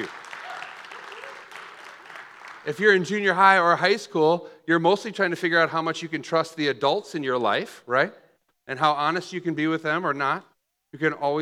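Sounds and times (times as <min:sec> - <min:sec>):
audience applause for the kids: 0:00.0 - 0:03.0
speech: 0:02.6 - 0:11.4.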